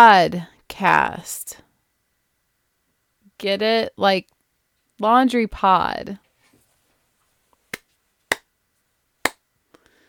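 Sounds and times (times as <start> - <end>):
speech: 0.0 - 1.6, 3.4 - 4.4, 5.0 - 6.2
sparse golf claps: 7.7 - 8.5.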